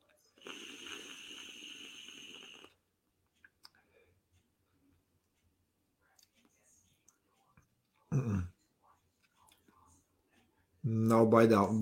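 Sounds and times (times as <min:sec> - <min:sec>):
vape coil boiling and bubbling liquid: 0:00.4 - 0:02.8
speech: 0:11.2 - 0:11.8.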